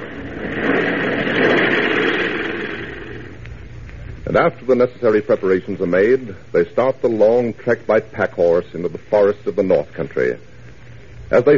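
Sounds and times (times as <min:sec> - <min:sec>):
airplane flying: 0:00.0 - 0:03.5
speech: 0:04.4 - 0:10.5, 0:11.3 - 0:11.5.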